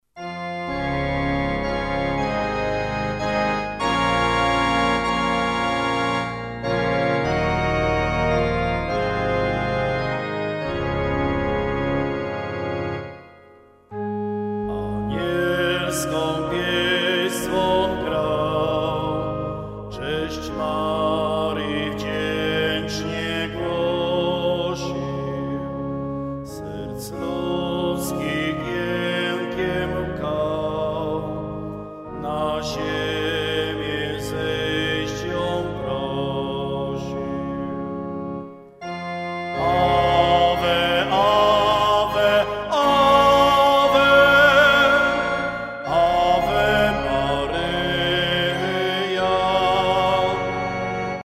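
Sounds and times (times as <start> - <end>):
angelic song: 0.2 - 51.2.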